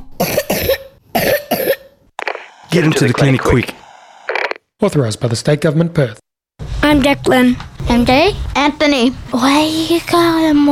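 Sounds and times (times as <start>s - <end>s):
wet persistent coughing from a person with a long-lasting chest illness: 0.2s - 2.0s
speech: 2.7s - 3.8s, 4.8s - 6.2s, 6.9s - 10.7s.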